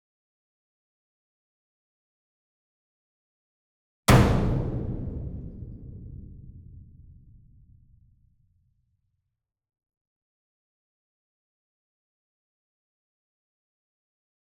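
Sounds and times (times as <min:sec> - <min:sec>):
66 inch drum hit with medium whip beater: 0:04.1 - 0:08.0.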